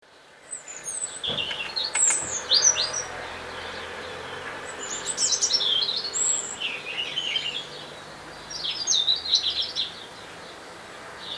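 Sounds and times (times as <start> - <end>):
European robin song: 0.1 - 11.3
soft thump: 1.2 - 2.5.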